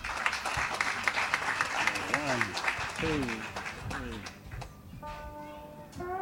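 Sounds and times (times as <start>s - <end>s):
audience applause for musicians at a klezmer performance: 0.0s - 4.6s.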